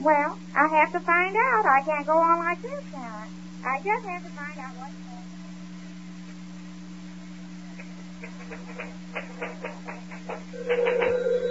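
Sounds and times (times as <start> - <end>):
speech: 0.0 - 5.1, 8.2 - 10.0, 10.6 - 11.1
telephone ringing: 10.6 - 11.5.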